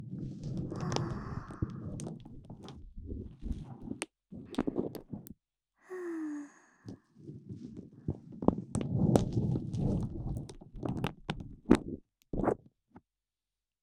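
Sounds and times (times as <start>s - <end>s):
plastic cling film crinkling: 0.1s - 5.3s, 7.2s - 12.5s.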